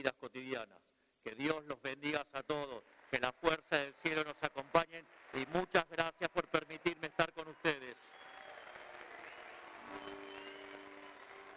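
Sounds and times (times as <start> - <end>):
speech: 0.0 - 8.2, 9.9 - 10.4
audience applause: 2.8 - 11.5.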